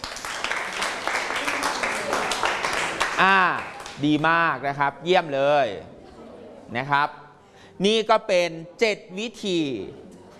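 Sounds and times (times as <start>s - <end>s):
group clapping: 0.0s - 4.2s
speech: 3.2s - 6.0s, 6.7s - 7.2s, 7.8s - 10.0s.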